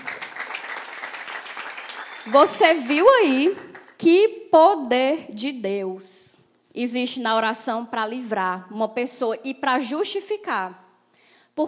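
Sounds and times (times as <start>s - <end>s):
crowd applauding loudly: 0.0s - 4.0s
speech: 2.2s - 10.8s.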